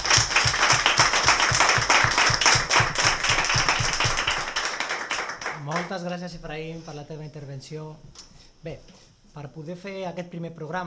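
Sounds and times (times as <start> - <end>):
steady pulsing beat: 0.0 - 4.5
applause for the teachers and staff of an institute: 0.0 - 5.9
speech: 6.0 - 10.8.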